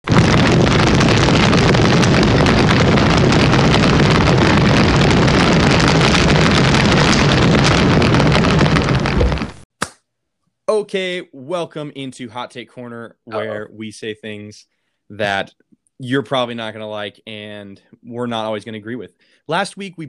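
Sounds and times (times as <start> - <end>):
roaring fire sound effect: 0.0 - 9.6
speech: 10.9 - 20.0.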